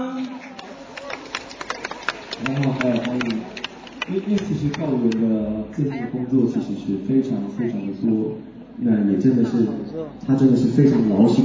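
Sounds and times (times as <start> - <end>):
clapping: 0.2 - 5.2
speech: 2.4 - 11.4.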